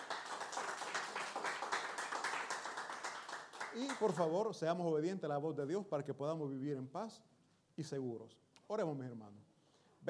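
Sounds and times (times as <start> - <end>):
audience applause: 0.0 - 4.3
speech: 3.8 - 10.0.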